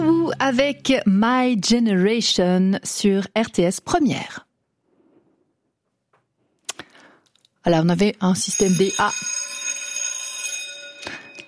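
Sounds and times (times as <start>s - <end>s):
speech: 0.3s - 4.5s, 7.6s - 9.4s
old primary school bell ringing: 8.4s - 11.4s.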